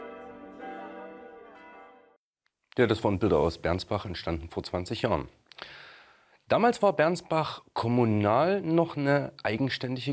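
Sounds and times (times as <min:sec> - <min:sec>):
newly installed church bells ringing: 0:00.0 - 0:02.2
speech: 0:02.8 - 0:05.8, 0:06.5 - 0:10.1.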